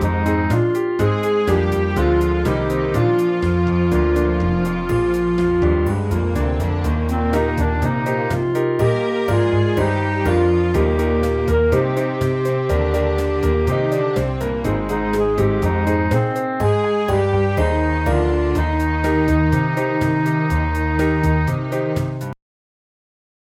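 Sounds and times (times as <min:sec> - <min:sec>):
light pop show tune: 0:00.0 - 0:22.4.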